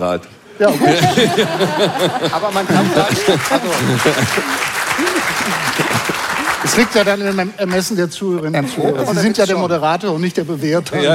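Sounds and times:
speech: 0.0s - 11.1s
laughter: 0.6s - 7.0s
audience applause: 1.0s - 7.7s.

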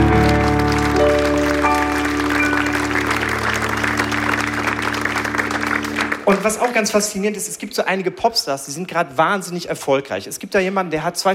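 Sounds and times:
audience applause: 0.0s - 7.1s
speech: 6.3s - 11.3s.

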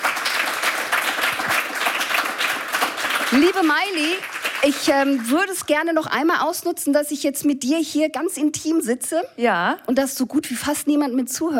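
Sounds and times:
crowd applauding: 0.0s - 5.7s
speech: 3.3s - 11.5s.

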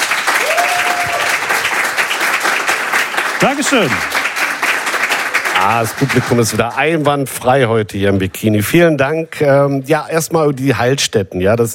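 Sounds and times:
audience applause: 0.0s - 7.1s
speech: 3.4s - 4.2s, 5.6s - 11.7s.

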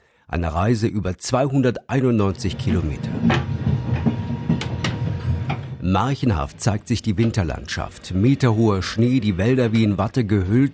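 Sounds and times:
speech: 0.3s - 3.5s, 5.9s - 10.7s
Glacier Express train riding on rails: 2.3s - 10.3s.

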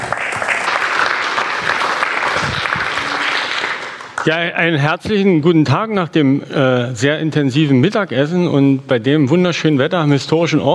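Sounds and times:
audience applause: 0.0s - 4.4s
speech: 4.2s - 10.7s.

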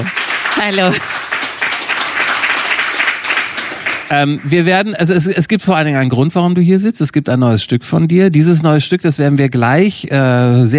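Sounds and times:
speech: 0.0s - 1.2s, 4.1s - 10.7s
audience applause: 0.0s - 4.9s.

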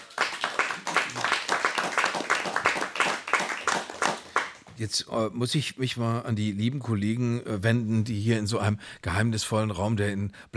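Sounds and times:
audience applause: 0.0s - 4.7s
speech: 4.8s - 10.5s.

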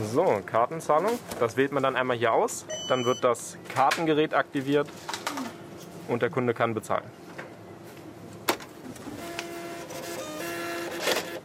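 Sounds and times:
speech: 0.0s - 5.2s, 6.1s - 7.2s
receipt printer printing: 9.0s - 11.4s.

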